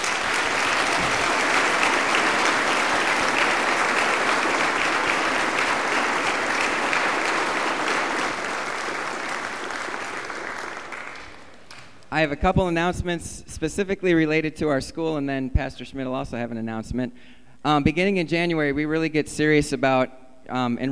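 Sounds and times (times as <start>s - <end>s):
audience applause: 0.0s - 12.1s
speech: 12.2s - 20.9s.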